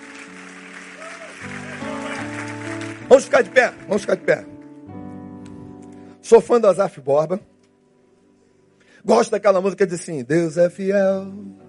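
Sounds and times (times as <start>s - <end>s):
audience applauding: 0.0s - 4.7s
sustained keyboard chords: 0.0s - 9.1s
speech: 3.1s - 4.5s, 6.3s - 7.5s, 9.0s - 11.6s.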